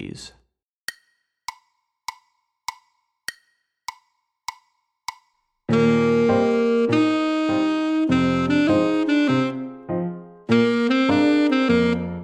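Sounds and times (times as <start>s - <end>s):
alto saxophone etude: 5.7s - 12.2s.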